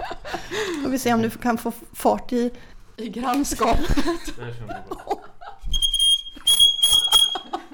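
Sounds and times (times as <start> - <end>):
speech: 0.5 - 5.2
laughter: 3.6 - 5.7, 7.0 - 7.7
shrill electronic toot resembling a fire alarm: 5.7 - 7.6.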